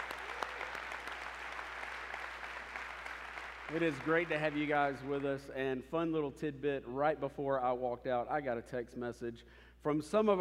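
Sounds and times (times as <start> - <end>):
crowd clapping: 0.0 - 5.4
speech: 3.7 - 10.3.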